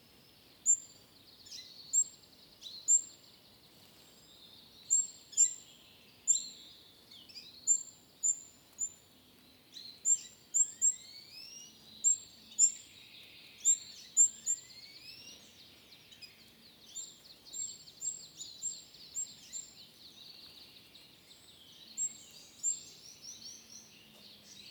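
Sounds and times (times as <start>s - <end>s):
birds in woodland: 0.0s - 24.6s.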